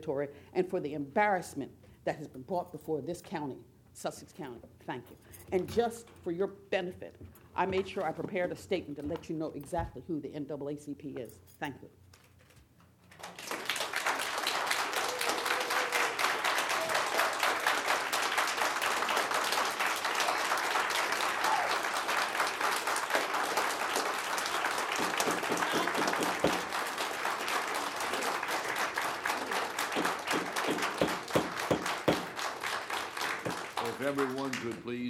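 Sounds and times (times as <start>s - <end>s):
speech: 0.0s - 12.0s
audience applause at a county meeting: 13.1s - 34.9s.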